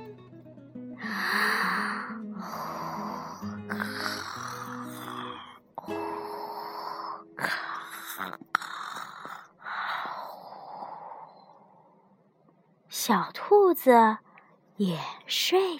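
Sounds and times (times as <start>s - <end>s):
voice imitating yawning: 1.0s - 9.9s
speech: 13.1s - 14.2s, 14.8s - 15.7s.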